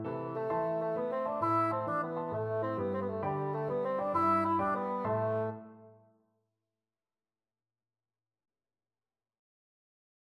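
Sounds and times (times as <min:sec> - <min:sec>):
bassoon: 0:00.0 - 0:06.0.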